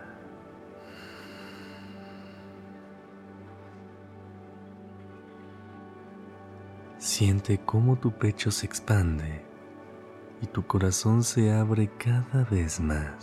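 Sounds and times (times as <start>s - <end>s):
gentle sustained drone of music: 0.0s - 13.2s
deep breath drawn in during a guided breathing exercise: 0.8s - 2.8s
speech: 7.0s - 9.5s, 10.4s - 13.2s.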